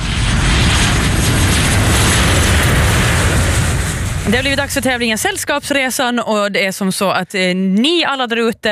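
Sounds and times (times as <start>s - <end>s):
airplane engine roar for a comedy flight-landing sketch about Extreme Airlines: 0.0s - 6.2s
speech: 4.3s - 8.7s.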